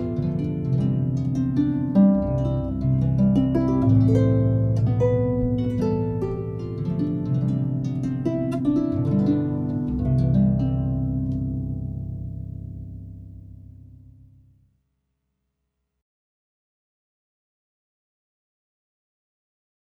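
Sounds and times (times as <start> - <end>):
harpist playing a wedding march: 0.0 - 14.3.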